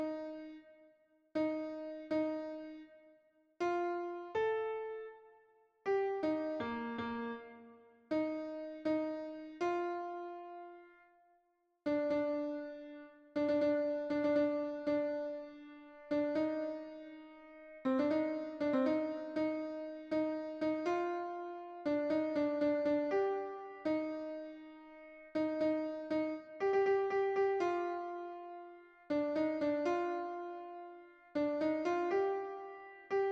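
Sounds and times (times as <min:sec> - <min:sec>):
piano: 0:00.0 - 0:33.3.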